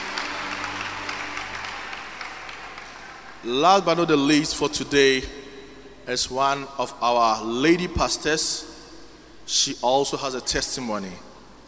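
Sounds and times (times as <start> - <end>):
audience clapping: 0.0 - 4.1
speech: 3.4 - 5.4, 6.1 - 8.7, 9.5 - 11.3.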